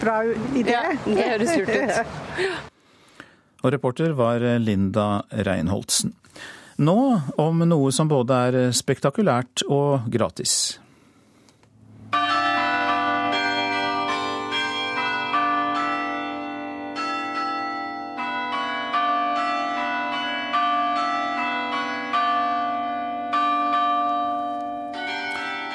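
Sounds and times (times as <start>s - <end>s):
speech: 0.0s - 2.7s, 3.6s - 10.9s
laughter: 0.8s - 2.6s
Oslo city hall carillon bells ringing: 12.1s - 25.7s.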